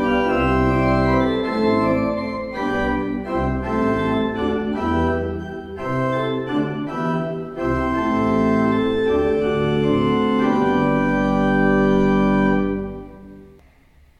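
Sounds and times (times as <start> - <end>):
Kleuker pipe organ: 0.0 - 13.6.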